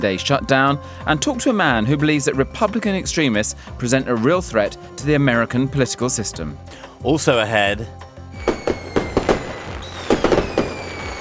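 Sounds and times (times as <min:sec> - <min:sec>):
speech: 0:00.0 - 0:08.1
Guy Fawkes Night fireworks in Britain crackling and banging: 0:08.4 - 0:11.1
thin high whistling tone: 0:08.4 - 0:11.1.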